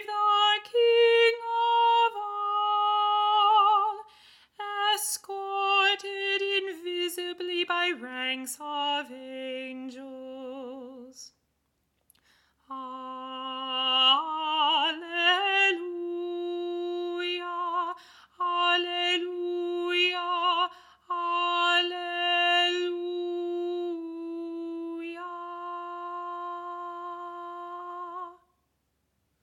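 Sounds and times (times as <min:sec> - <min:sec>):
alto voice singing a hymn: 0:00.0 - 0:11.3, 0:12.7 - 0:28.4.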